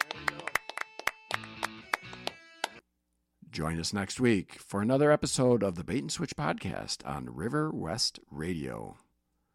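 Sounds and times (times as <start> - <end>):
crowd of people clapping hands: 0.0 - 2.8
speech: 3.6 - 9.0.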